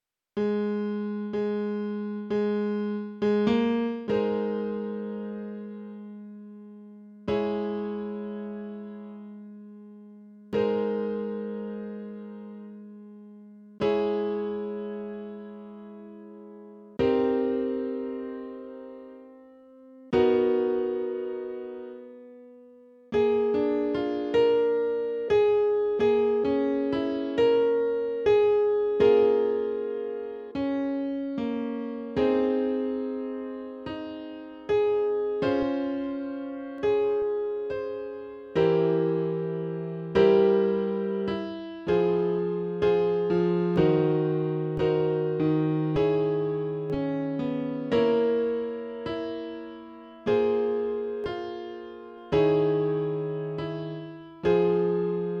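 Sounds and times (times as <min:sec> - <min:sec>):
instrumental music: 0:00.4 - 0:55.3.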